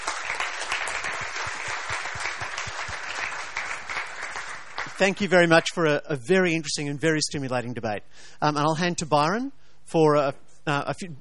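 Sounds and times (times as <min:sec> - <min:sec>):
audience applause: 0:00.0 - 0:05.3
speech: 0:05.0 - 0:11.1.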